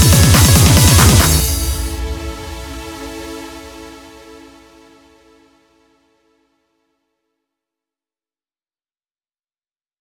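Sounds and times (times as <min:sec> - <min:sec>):
off vocal instrumental music: 0:00.0 - 0:06.2.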